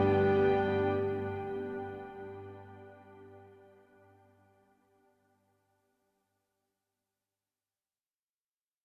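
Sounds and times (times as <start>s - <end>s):
ambient music: 0.0s - 5.2s.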